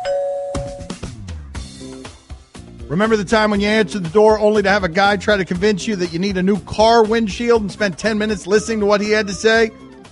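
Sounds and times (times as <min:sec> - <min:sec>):
doorbell ringing: 0:00.0 - 0:01.0
speech: 0:02.9 - 0:09.8.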